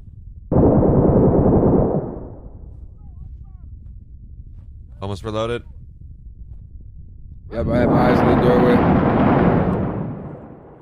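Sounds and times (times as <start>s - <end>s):
grenade explosion in the video game Six Days in Fallujah: 0.5s - 2.6s, 7.6s - 10.7s
speech: 5.0s - 5.8s, 7.5s - 9.1s.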